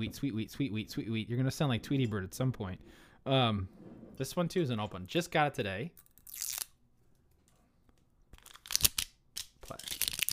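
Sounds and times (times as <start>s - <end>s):
speech: 0.0s - 6.6s
plastic wrapping being torn off: 6.2s - 6.8s, 8.4s - 10.3s.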